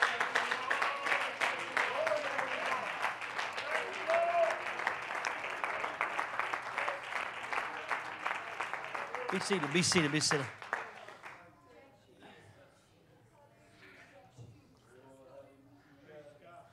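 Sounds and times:
audience clapping hands: 0.0s - 11.4s
speech: 9.4s - 10.6s.

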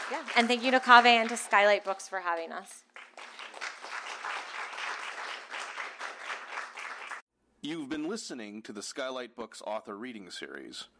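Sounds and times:
audience applause: 0.0s - 7.2s
speech: 0.1s - 2.9s, 7.6s - 10.9s.

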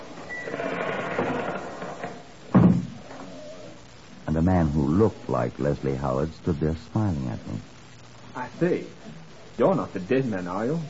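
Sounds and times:
door creaking open: 0.2s - 3.4s
speech: 4.4s - 7.8s, 8.6s - 10.8s.

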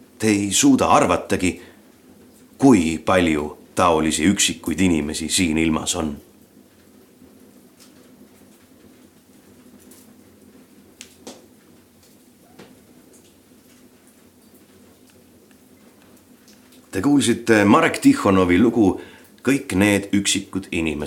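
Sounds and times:
rain falling outside a cabin door: 0.0s - 21.0s
speech: 0.2s - 1.7s, 2.6s - 6.3s, 17.0s - 21.0s
raindrop taps: 6.2s - 17.0s.

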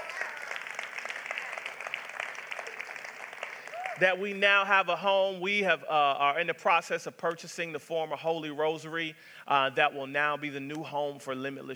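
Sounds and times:
crowd of people clapping: 0.0s - 4.2s
speech: 4.0s - 11.7s.

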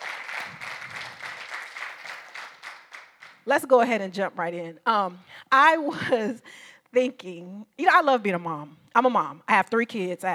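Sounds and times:
round of applause: 0.0s - 3.5s
speech: 3.4s - 10.3s.

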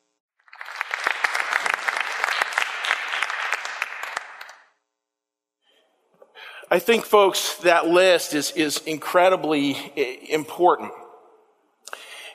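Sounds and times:
audience applause: 0.4s - 4.7s
speech: 6.7s - 11.0s.

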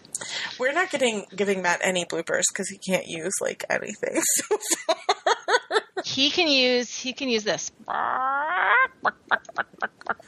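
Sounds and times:
speech: 0.6s - 10.2s
laughter: 4.2s - 6.1s, 8.6s - 10.2s
chicken squawk and clucks sound effect: 7.9s - 10.2s.

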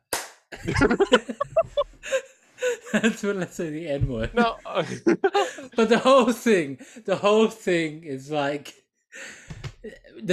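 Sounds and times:
hand clap: 0.0s - 0.6s, 9.5s - 9.8s
speech: 0.6s - 1.5s, 2.9s - 10.3s
laughter: 0.6s - 6.8s.

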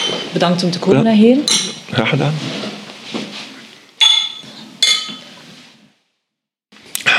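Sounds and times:
glasses clinking in a toast: 0.0s - 0.4s, 1.4s - 1.9s, 4.0s - 5.3s
speech: 0.3s - 2.6s.

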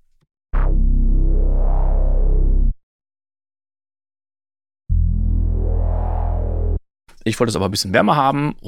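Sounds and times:
unfiltered synthesizer bass notes: 0.6s - 2.8s, 4.9s - 6.8s
speech: 7.3s - 8.6s.

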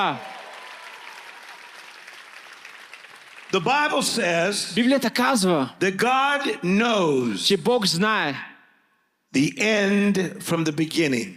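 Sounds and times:
speech: 0.0s - 0.3s, 3.5s - 8.5s, 9.3s - 11.3s
audience clapping hands: 0.0s - 4.7s.

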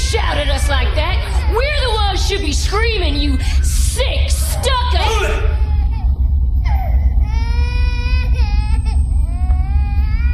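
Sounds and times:
baby crying: 0.0s - 10.3s
steady low rumble: 0.0s - 10.3s.

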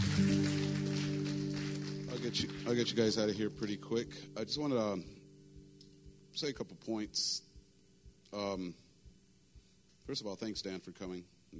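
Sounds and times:
audience applause, hand clapping: 0.0s - 3.2s
speech: 2.2s - 5.2s, 6.4s - 7.5s, 8.3s - 8.8s, 10.1s - 11.5s.

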